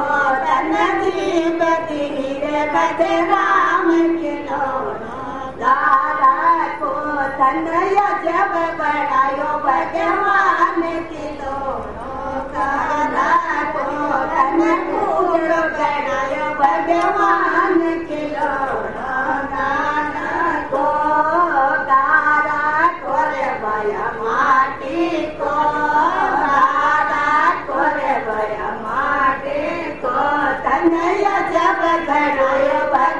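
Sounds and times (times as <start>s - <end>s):
person singing in the street in India in the wee hours: 0.0s - 33.1s.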